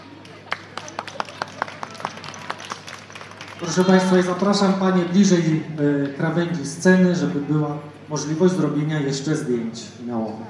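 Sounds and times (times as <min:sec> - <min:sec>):
faint hum: 0:00.0 - 0:10.4
audience clapping in rhythm for dancers: 0:00.2 - 0:04.7
speech: 0:03.6 - 0:10.4.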